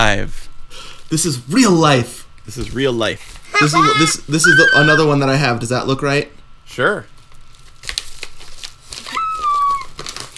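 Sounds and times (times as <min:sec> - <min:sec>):
speech: 0:00.0 - 0:07.1
plastic packaging on a music album torn open: 0:07.2 - 0:10.3.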